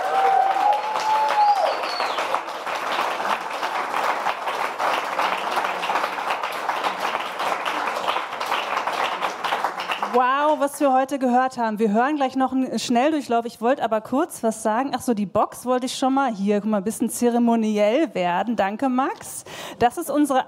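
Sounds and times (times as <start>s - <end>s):
whistle or cheer: 0.0s - 2.4s
audience applause: 0.0s - 10.6s
speech: 10.2s - 20.4s.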